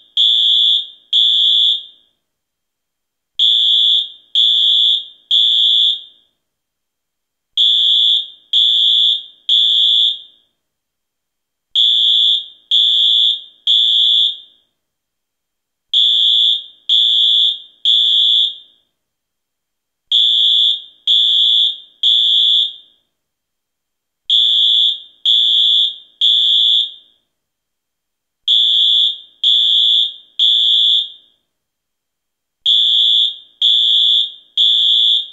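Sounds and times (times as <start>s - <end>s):
fire alarm: 0.0s - 2.2s, 3.4s - 6.4s, 7.6s - 10.6s, 11.7s - 14.8s, 15.9s - 19.0s, 20.1s - 23.2s, 24.3s - 27.3s, 28.4s - 31.5s, 32.6s - 35.3s.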